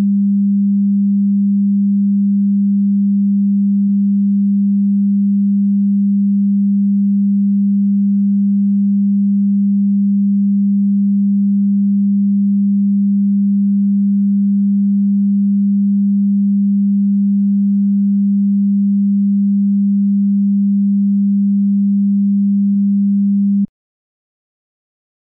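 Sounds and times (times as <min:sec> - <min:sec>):
200Hz in-phase sine tone for a Bluetooth test: 0:00.0 - 0:23.7.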